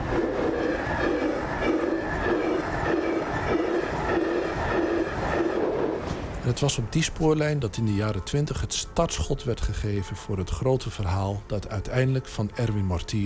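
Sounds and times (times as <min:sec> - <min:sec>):
train speeding past: 0:00.0 - 0:07.8
speech: 0:06.5 - 0:13.2.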